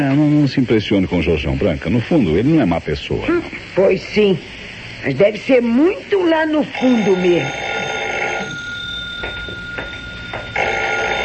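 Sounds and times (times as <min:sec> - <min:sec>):
speech: 0:00.0 - 0:07.6
telephone ringing: 0:06.5 - 0:11.2
steady electronic tone: 0:06.8 - 0:11.2.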